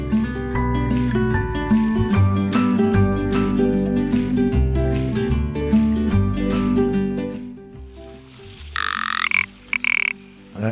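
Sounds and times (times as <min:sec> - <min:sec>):
background music: 0:00.0 - 0:10.7
Rock Ptarmigan calls: 0:08.4 - 0:10.5.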